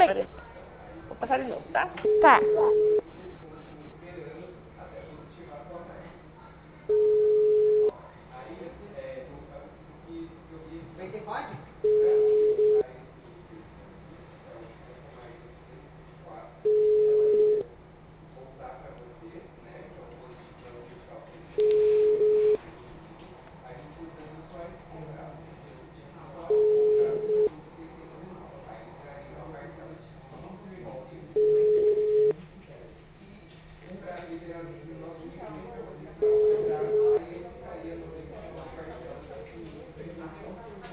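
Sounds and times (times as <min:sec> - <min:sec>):
faint low noise: 0:00.0 - 0:40.9
speech: 0:01.2 - 0:03.1
ringback tone of an unanswered telephone call: 0:02.1 - 0:03.0, 0:06.9 - 0:07.9, 0:11.9 - 0:12.8, 0:16.7 - 0:17.6, 0:21.6 - 0:22.6, 0:26.5 - 0:27.5, 0:31.4 - 0:32.3, 0:36.2 - 0:37.2.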